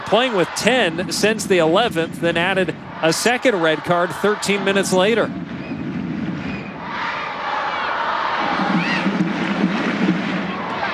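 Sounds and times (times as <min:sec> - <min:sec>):
large stadium crowd cheering and chanting for the home side: 0:00.0 - 0:10.9
speech: 0:00.1 - 0:05.4
rising whistle: 0:06.4 - 0:06.8.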